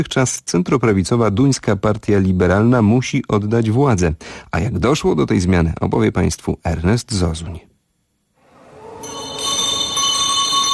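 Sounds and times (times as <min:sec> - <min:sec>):
speech: 0:00.0 - 0:07.7
handbell rung to open polling stations in Denmark: 0:09.0 - 0:10.7.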